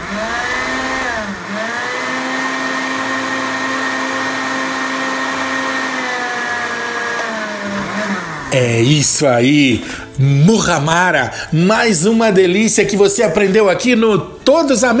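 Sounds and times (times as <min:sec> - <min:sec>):
blender mixing ingredients: 0:00.0 - 0:09.9
speech: 0:08.5 - 0:14.9.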